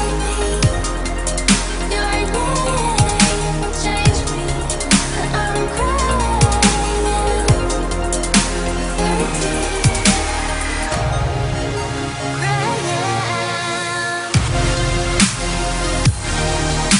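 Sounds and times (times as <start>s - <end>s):
female vocals: 0.0s - 11.2s, 12.2s - 14.4s
trance beat: 0.0s - 16.9s.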